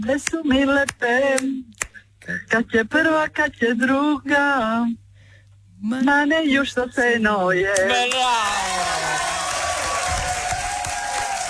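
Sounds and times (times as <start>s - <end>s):
speech: 0.0s - 5.0s, 5.8s - 9.2s
audience applause ovation: 7.9s - 11.4s.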